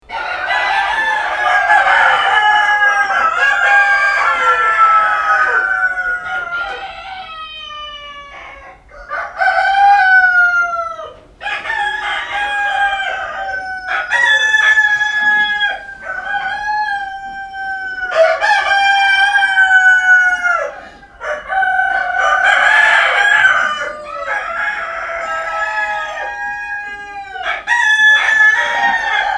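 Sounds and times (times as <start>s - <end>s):
rooster crowing: 0.1s - 29.3s.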